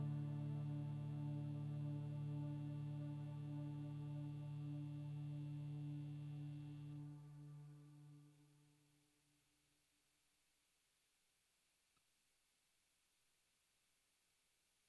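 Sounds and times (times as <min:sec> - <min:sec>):
background drone: 0:00.0 - 0:08.3.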